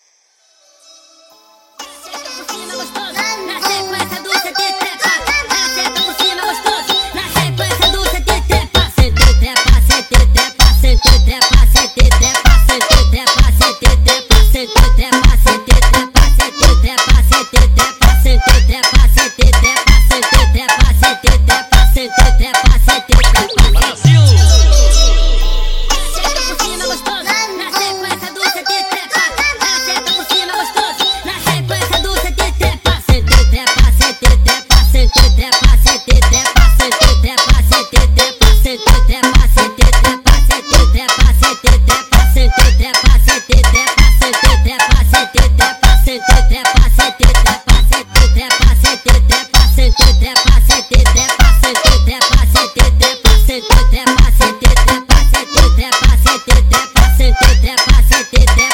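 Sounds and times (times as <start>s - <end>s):
sped up funk music: 1.8s - 58.7s.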